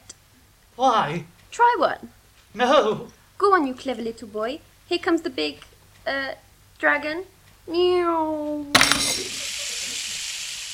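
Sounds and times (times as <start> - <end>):
speech: 0.8 - 9.2
hot object sizzling and burning through floor: 8.8 - 10.7.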